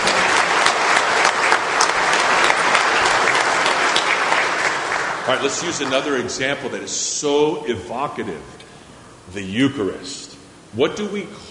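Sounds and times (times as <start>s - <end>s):
audience applause: 0.0s - 6.7s
speech: 5.3s - 8.6s, 9.3s - 11.4s.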